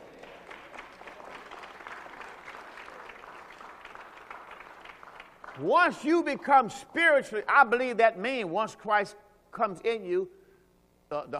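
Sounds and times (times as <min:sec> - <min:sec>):
crowd clapping: 0:00.0 - 0:06.0
speech: 0:05.6 - 0:10.4, 0:11.1 - 0:11.3.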